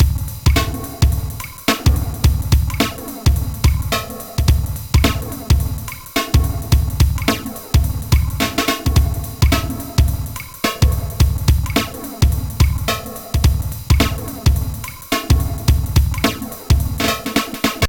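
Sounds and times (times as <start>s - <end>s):
bass drums: 0.0s - 17.8s.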